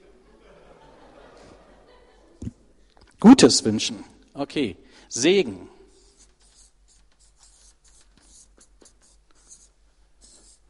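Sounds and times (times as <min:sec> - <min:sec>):
laughter: 0:00.0 - 0:02.6
speech: 0:03.3 - 0:05.7
writing on a board: 0:05.9 - 0:10.6.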